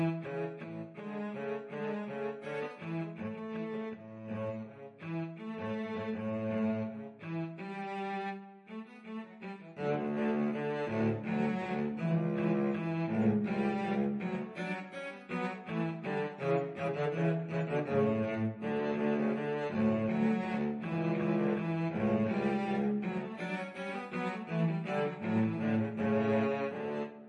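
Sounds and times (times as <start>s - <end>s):
cello duet: 0.0s - 27.2s.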